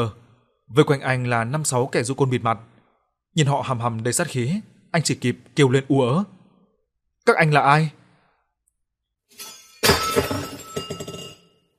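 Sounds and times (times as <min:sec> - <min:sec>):
speech: 0:00.0 - 0:02.7, 0:03.4 - 0:06.4, 0:07.2 - 0:08.0
glass shards tinkling: 0:09.3 - 0:11.6
glass vase falling and shattering: 0:09.3 - 0:11.7.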